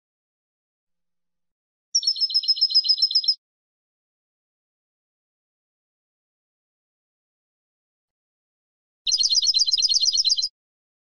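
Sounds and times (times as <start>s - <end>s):
European goldfinch singing: 2.0s - 3.4s, 9.1s - 10.5s.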